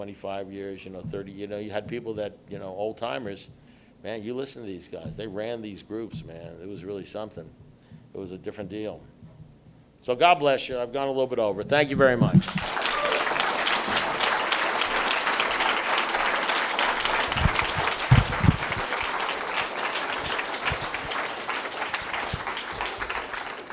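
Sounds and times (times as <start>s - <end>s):
speech: 0.0s - 9.1s, 10.0s - 12.6s
audience applause: 12.4s - 23.7s.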